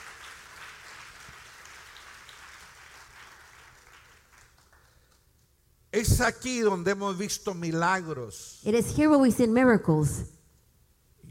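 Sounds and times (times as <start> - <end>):
audience applause: 0.0 - 5.2
speech: 6.0 - 10.4.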